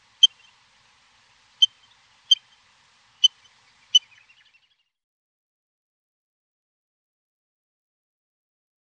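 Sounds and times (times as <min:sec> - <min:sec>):
birds: 0:00.0 - 0:05.0.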